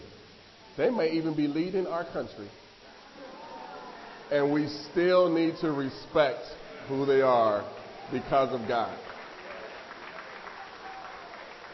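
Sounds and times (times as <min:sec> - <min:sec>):
speech: 0:00.8 - 0:02.6, 0:04.3 - 0:09.1
partial audience clapping: 0:07.5 - 0:11.7.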